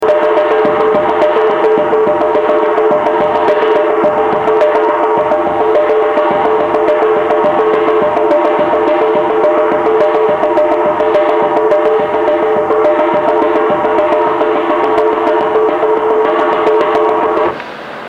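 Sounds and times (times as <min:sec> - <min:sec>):
street ambience at a shrine in Mexico: 0:00.0 - 0:18.0.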